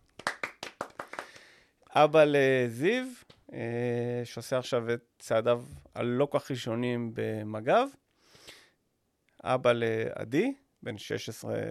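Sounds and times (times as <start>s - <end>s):
hands clapping: 0.0s - 1.6s
speech: 2.0s - 8.0s, 9.4s - 11.6s.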